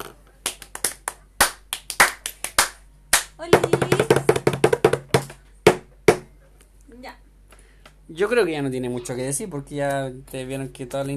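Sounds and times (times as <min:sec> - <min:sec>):
small group clapping: 0:00.4 - 0:05.4
speech: 0:03.4 - 0:04.2, 0:08.1 - 0:11.1.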